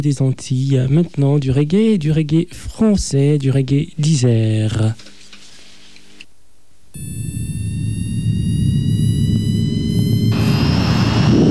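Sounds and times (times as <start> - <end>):
speech: 0.0 - 5.1
jet airliner taking off for Pointe-à-Pitre: 7.2 - 11.4.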